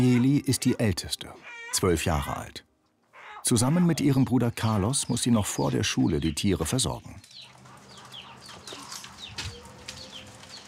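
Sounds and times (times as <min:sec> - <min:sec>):
speech: 0:00.0 - 0:02.7, 0:03.4 - 0:07.5
chickens clucking in a coop: 0:03.1 - 0:10.6.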